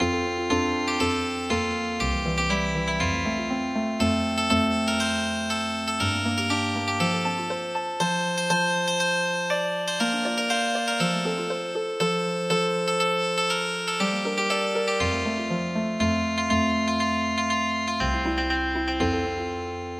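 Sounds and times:
traditional healing harp music: 0:00.0 - 0:19.9.

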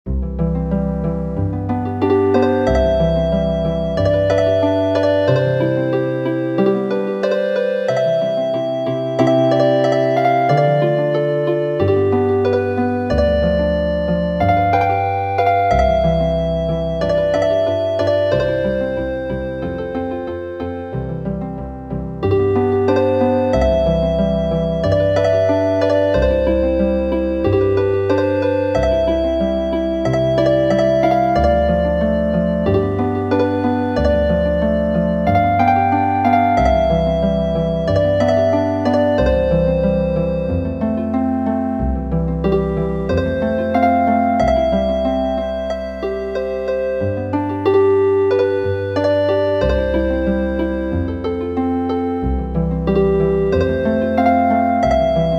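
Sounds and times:
healing harp music: 0:00.1 - 0:55.3.

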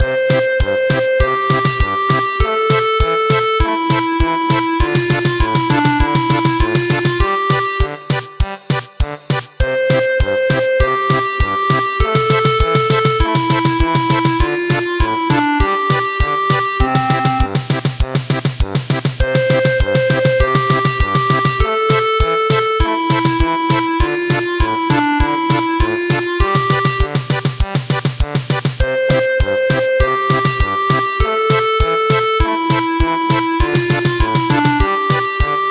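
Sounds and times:
German polka music: 0:00.0 - 0:35.6.

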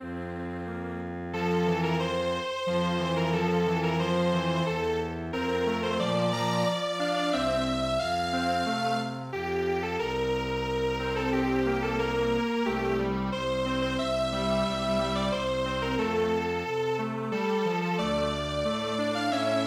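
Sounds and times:
string quartet playing: 0:00.6 - 0:19.6.

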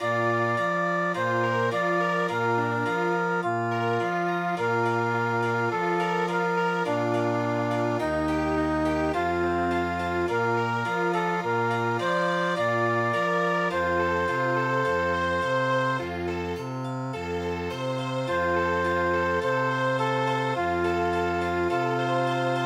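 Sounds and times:
chamber music: 0:00.0 - 0:22.6.

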